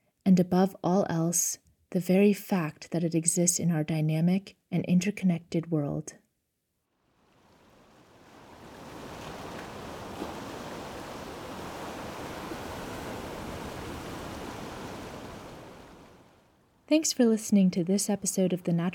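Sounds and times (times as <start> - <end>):
speech: 0.3 - 6.2, 16.9 - 18.9
ocean surf breaking along intertidal zone shore: 7.0 - 16.7.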